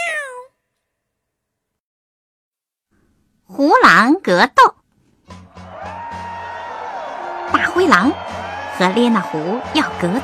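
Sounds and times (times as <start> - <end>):
cat meowing: 0.0 - 0.5
speech: 3.5 - 4.8, 7.8 - 10.2.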